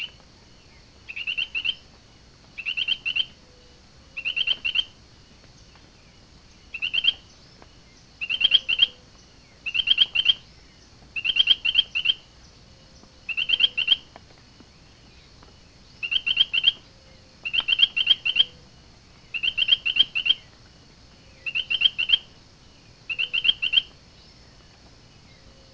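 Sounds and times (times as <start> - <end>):
Allobates myersi frog calling: 1.1 - 1.9, 2.6 - 5.0, 6.7 - 7.4, 8.2 - 10.5, 11.2 - 14.1, 16.0 - 20.5, 21.2 - 22.4, 23.1 - 24.0.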